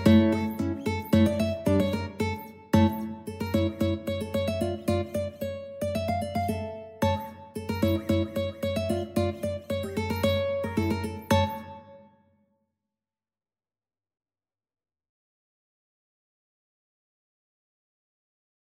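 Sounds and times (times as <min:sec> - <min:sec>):
mandolin: 0:00.0 - 0:12.1.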